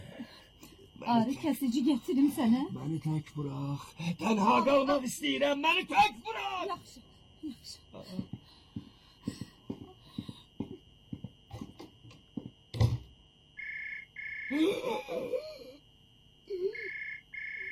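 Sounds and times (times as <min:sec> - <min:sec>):
speech: 0:01.0 - 0:08.4, 0:14.5 - 0:15.6
knocks and thuds: 0:08.2 - 0:13.2
telephone ringing with electronic trilling: 0:13.6 - 0:14.6, 0:16.8 - 0:17.7.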